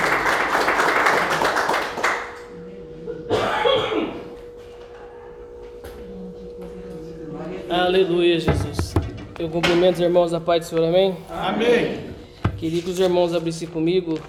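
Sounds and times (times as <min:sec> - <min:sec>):
audience applause: 0:00.0 - 0:02.5
speech: 0:07.9 - 0:08.8, 0:09.4 - 0:14.2.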